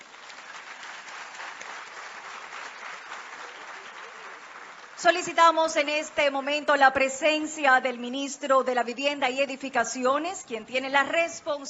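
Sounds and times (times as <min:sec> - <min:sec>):
loud audience applause: 0:00.0 - 0:05.4
speech: 0:05.0 - 0:11.6.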